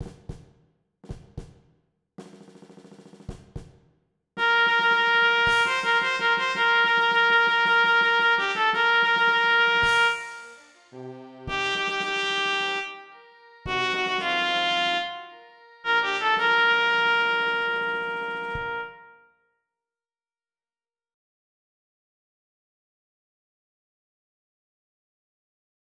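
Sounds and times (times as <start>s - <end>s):
trumpet: 4.4s - 19.4s.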